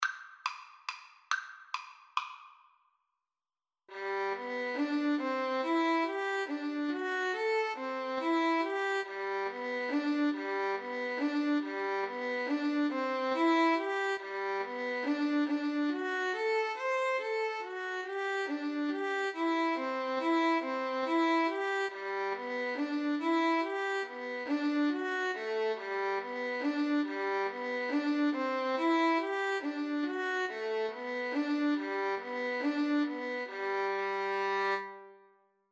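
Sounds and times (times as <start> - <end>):
violin duet: 3.9 - 35.1.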